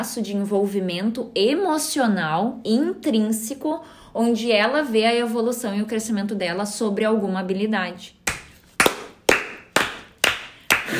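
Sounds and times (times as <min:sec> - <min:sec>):
speech: 0:00.0 - 0:08.2
slow spaced hand claps: 0:08.3 - 0:10.9.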